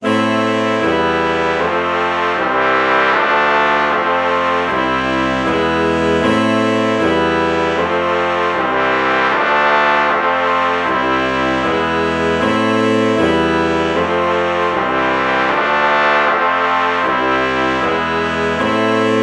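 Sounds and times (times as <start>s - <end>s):
alto saxophone and trumpet chord morph: 0.0s - 19.2s.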